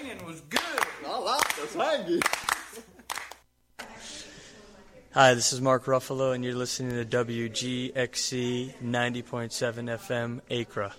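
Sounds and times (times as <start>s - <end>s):
speech: 0.1s - 2.5s, 5.2s - 10.9s
hand claps: 0.1s - 3.5s.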